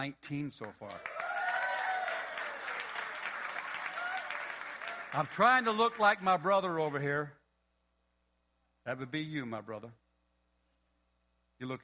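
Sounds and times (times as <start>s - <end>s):
speech: 0.0s - 1.2s, 5.1s - 7.4s, 8.8s - 10.0s, 11.6s - 11.8s
audience clapping: 0.5s - 7.3s.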